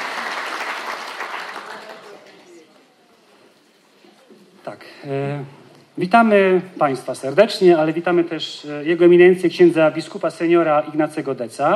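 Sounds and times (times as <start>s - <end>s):
audience applause: 0.0s - 2.6s
speech: 4.7s - 11.7s.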